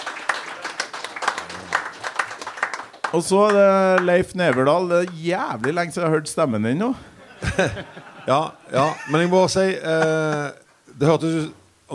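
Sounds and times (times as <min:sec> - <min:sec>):
audience applause: 0:00.0 - 0:05.8
speech: 0:03.1 - 0:11.9
laughter: 0:07.0 - 0:10.4.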